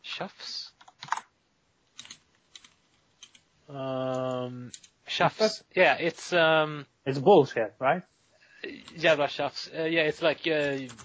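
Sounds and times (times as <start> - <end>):
speech: 0.2 - 0.6, 3.7 - 8.1, 8.8 - 11.0
typing on a computer keyboard: 0.8 - 1.3, 1.9 - 3.4, 4.7 - 5.0, 10.7 - 11.0.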